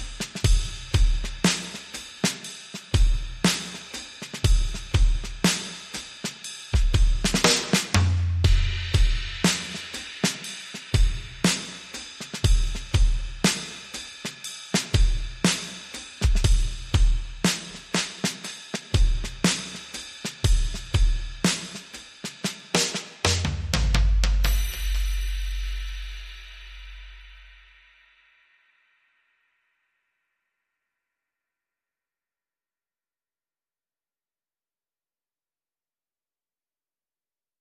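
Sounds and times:
clean drums mix: 0.0 - 28.8.

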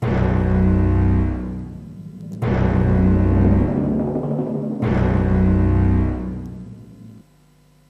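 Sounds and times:
drums: 0.0 - 7.2.

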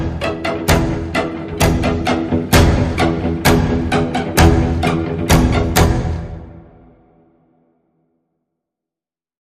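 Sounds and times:
sinister string pulse in the key of E: 0.0 - 7.0.

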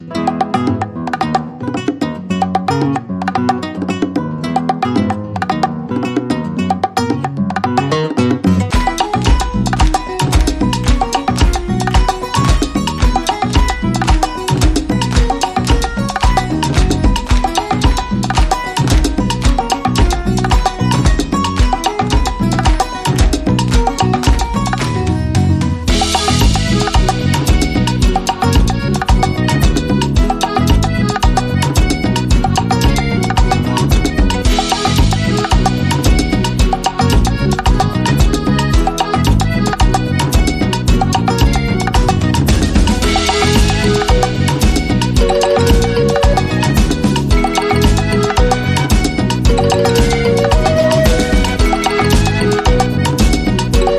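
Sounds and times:
Cuban rumba music: 0.0 - 53.9.

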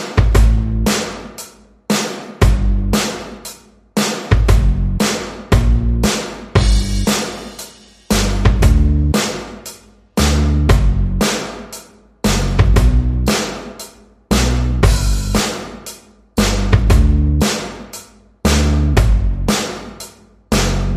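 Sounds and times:
drums: 0.0 - 20.9
bass: 0.2 - 1.0, 2.4 - 3.1, 4.3 - 7.3, 8.1 - 9.4, 10.2 - 11.4, 12.2 - 13.5, 14.3 - 15.6, 16.4 - 17.6, 18.4 - 19.8, 20.5 - 20.9.

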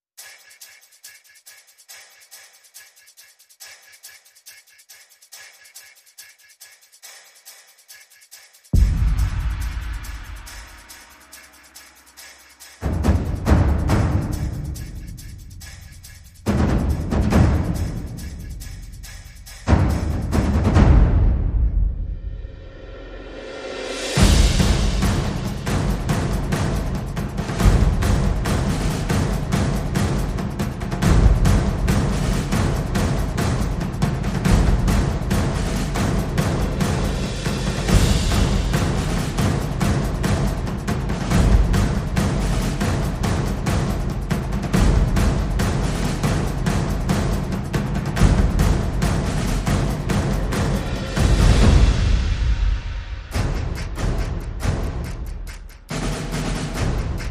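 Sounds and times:
percussion: 0.0 - 57.2.

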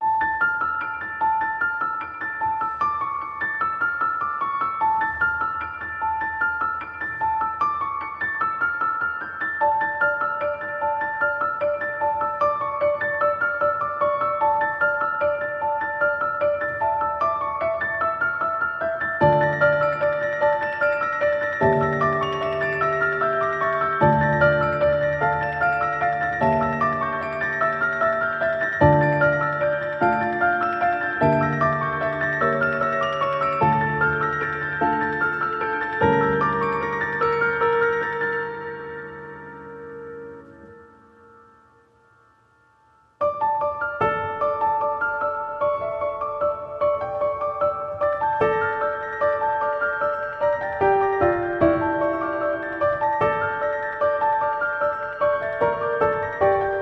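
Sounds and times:
solo piano: 0.0 - 56.8.

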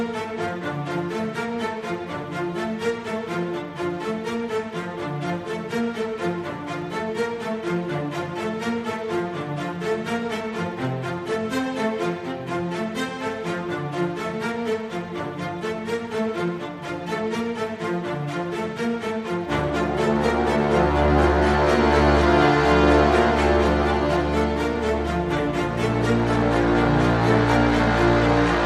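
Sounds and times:
strings: 0.0 - 28.6
brass: 19.3 - 28.6.

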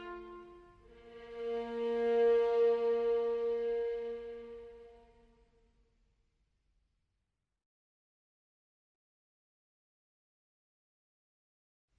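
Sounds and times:
violin concerto in B flat major: 0.0 - 5.4.

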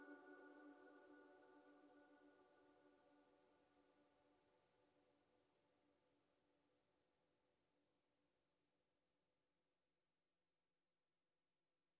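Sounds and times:
strings: 0.0 - 3.0
vocals: 0.0 - 4.2.

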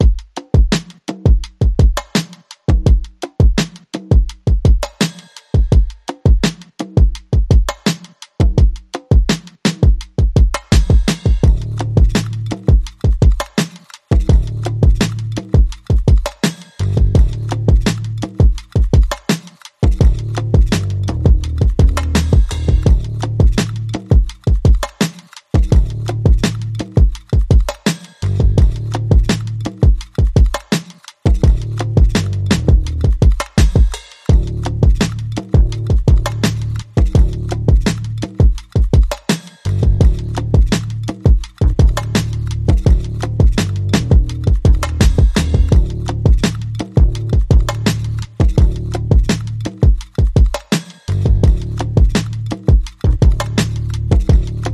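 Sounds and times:
drums: 0.0 - 54.7
bass: 10.8 - 12.8, 14.2 - 15.9, 16.8 - 18.7, 19.8 - 24.4, 25.6 - 27.0, 28.2 - 29.9, 31.3 - 38.4, 39.7 - 49.9, 51.1 - 54.7.

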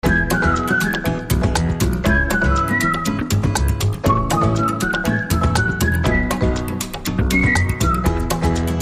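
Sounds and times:
whistling: 0.0 - 8.7.

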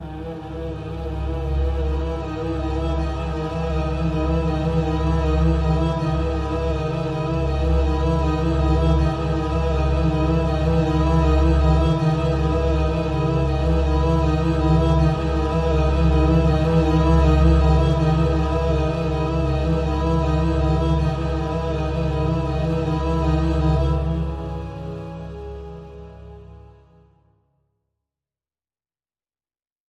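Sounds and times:
string instruments: 0.0 - 27.2.

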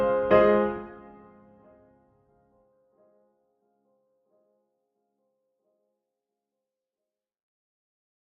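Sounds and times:
pianos: 0.0 - 2.2.

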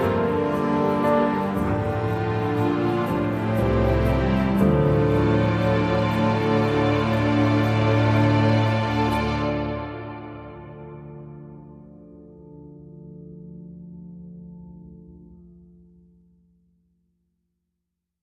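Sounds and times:
orchestra: 0.0 - 12.8.

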